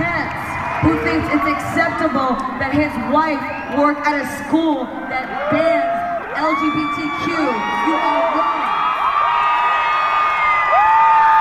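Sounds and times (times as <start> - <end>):
crowd clapping: 0.0 - 2.5, 8.0 - 11.3
crowd cheering and whooping: 0.0 - 11.3
speech: 0.8 - 8.5.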